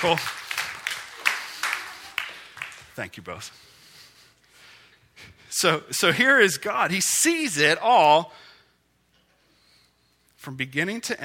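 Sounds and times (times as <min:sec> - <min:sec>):
speech: 0:00.0 - 0:00.4, 0:03.0 - 0:03.7, 0:05.6 - 0:08.5, 0:10.4 - 0:11.2
thin applause from a small group: 0:00.0 - 0:03.5.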